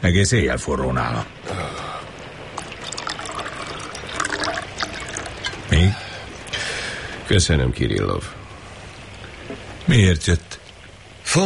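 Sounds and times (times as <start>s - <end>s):
speech: 0.0s - 1.8s, 7.3s - 8.4s, 9.9s - 10.6s
tea being poured into a cup: 2.6s - 5.9s.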